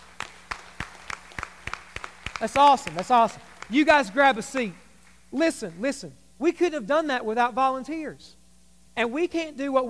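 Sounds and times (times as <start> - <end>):
round of applause: 0.0 - 4.7
speech: 2.4 - 8.4, 9.0 - 9.8.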